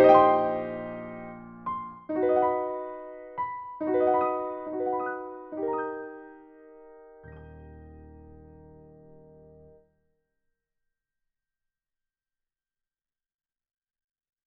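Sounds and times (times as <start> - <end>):
synth piano piece: 0.0 - 9.8.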